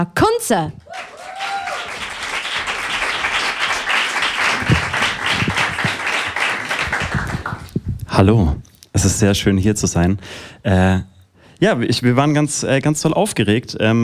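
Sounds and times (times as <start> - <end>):
speech: 0.0 - 0.9, 8.2 - 14.0
audience applause: 0.8 - 7.8.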